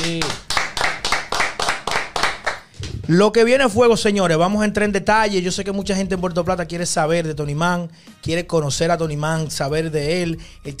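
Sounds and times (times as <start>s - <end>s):
applause: 0.0s - 2.7s
speech: 3.1s - 10.7s.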